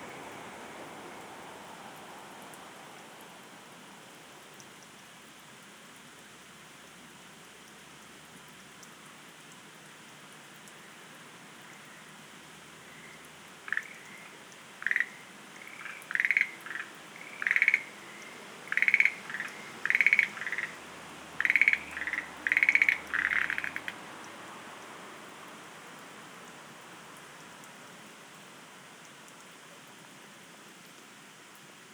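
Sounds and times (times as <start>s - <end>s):
Schlegel's green tree frog calling: 12.8s - 24.2s.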